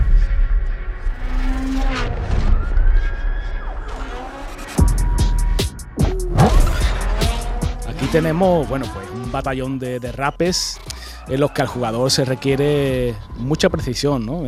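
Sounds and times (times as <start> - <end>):
engine roar in Need for Speed Unbound street racing: 0.5 - 5.1, 6.0 - 13.3
screeching tires: 1.0 - 14.4
wailing police sirens: 2.2 - 13.7
speech: 8.1 - 14.4.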